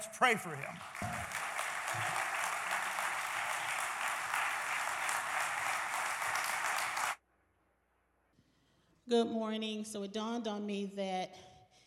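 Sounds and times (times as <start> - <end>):
speech: 0.0 - 1.1, 9.1 - 11.5
audience applause: 0.0 - 7.2.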